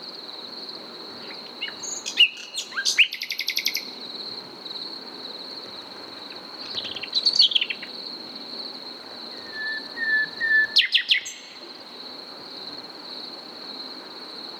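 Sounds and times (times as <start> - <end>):
Common nightingale Luscinia megarhynchos song: 1.2 - 4.1, 6.2 - 8.4, 9.0 - 12.1.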